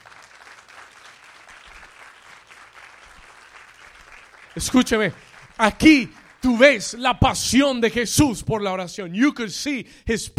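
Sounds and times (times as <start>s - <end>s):
audience applause: 0.0s - 6.8s
speech: 4.6s - 10.3s.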